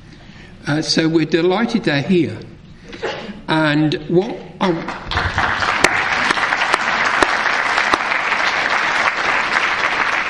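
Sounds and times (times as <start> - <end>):
speech: 0.6 - 5.5
audience applause: 5.0 - 10.2.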